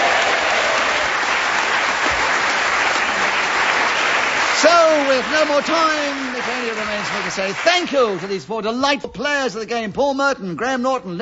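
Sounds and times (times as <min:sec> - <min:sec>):
audience applause: 0:00.0 - 0:08.5
speech: 0:05.1 - 0:11.2.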